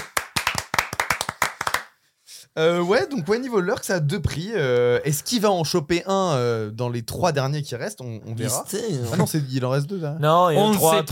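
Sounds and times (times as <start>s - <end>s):
brisk hand clapping from a few people: 0.0s - 2.0s
speech: 2.6s - 11.1s.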